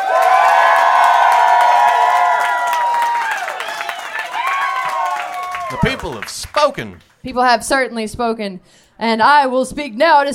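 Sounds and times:
applause: 0.0s - 7.2s
crowd cheering: 0.0s - 7.2s
speech: 5.8s - 10.3s.

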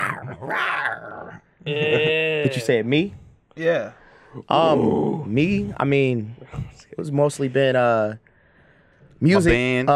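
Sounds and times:
person imitating a raptor growl and screech: 0.0s - 2.6s, 4.5s - 5.3s
speech: 0.4s - 0.8s, 1.6s - 8.2s, 9.2s - 9.9s.

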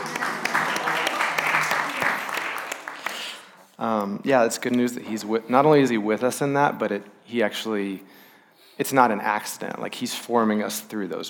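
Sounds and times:
audience clapping: 0.0s - 3.6s
speech: 3.8s - 11.2s.

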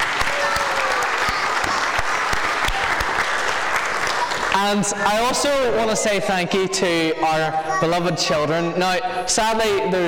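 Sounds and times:
crowd clapping: 0.0s - 5.0s
speech: 4.6s - 10.0s.

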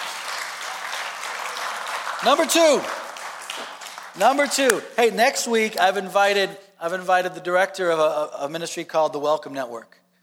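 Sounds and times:
clapping: 0.0s - 4.9s
speech: 2.2s - 3.0s, 3.6s - 10.0s.

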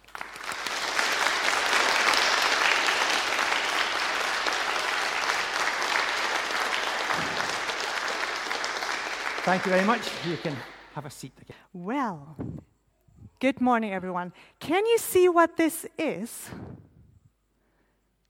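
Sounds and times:
audience applause: 0.0s - 11.0s
speech: 9.5s - 12.5s, 13.4s - 16.6s.

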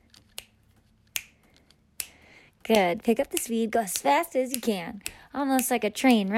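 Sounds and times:
finger snapping: 1.1s - 1.4s, 2.0s - 5.7s
speech: 2.7s - 6.3s.

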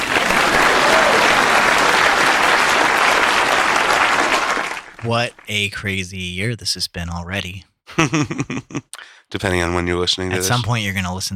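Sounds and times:
applause: 0.0s - 5.5s
speech: 5.1s - 11.3s
laughter: 7.9s - 8.9s.

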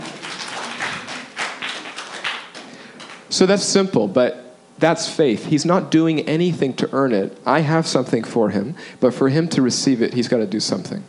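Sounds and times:
audience clapping: 0.0s - 3.3s
speech: 3.3s - 11.0s.

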